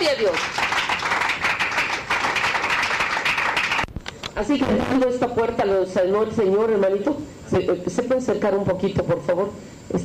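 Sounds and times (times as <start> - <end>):
crowd clapping: 0.0 - 3.9
speech: 4.4 - 10.0.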